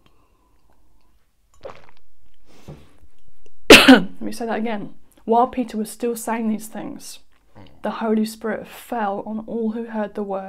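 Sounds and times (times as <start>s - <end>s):
person sipping water: 0.0s - 3.7s, 7.3s - 7.9s
speech: 3.9s - 7.2s, 7.8s - 10.4s.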